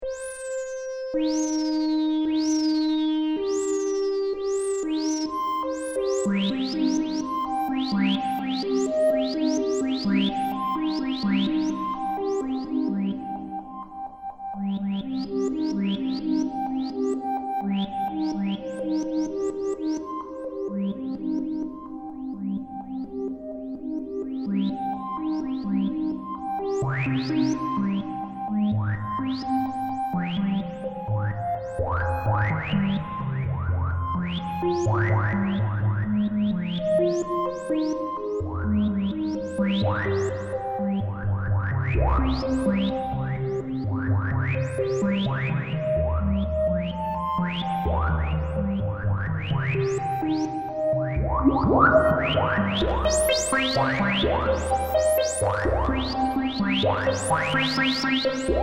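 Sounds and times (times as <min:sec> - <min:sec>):
JP8 slow sync synth arpeggio: 0:00.2 - 0:58.6.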